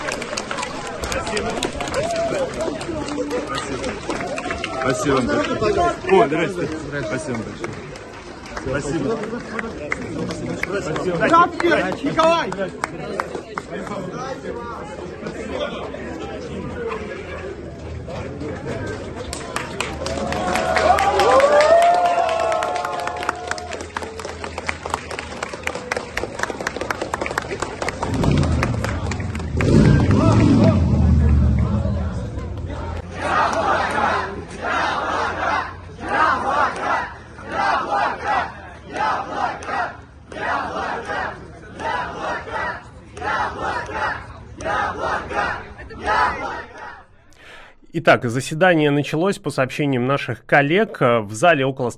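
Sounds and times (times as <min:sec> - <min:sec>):
people shouting and cheering: 0:00.0 - 0:07.5, 0:16.4 - 0:24.4, 0:28.1 - 0:47.2
large crowd outside a courthouse: 0:00.0 - 0:49.3
speech: 0:01.2 - 0:07.9, 0:08.6 - 0:16.0, 0:48.0 - 0:51.9.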